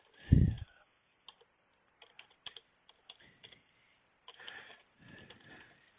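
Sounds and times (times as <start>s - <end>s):
typing on a computer keyboard: 0.0s - 3.6s, 4.2s - 5.9s.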